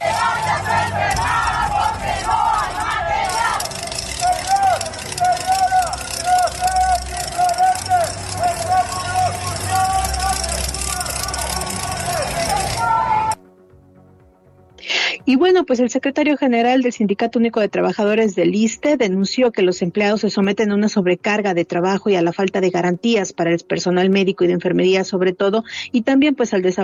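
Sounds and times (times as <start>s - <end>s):
IMSS health workers chanting slogans in a protest march in Xalapa: 0.0s - 13.4s
passing traffic: 0.0s - 13.4s
speech: 15.7s - 26.8s.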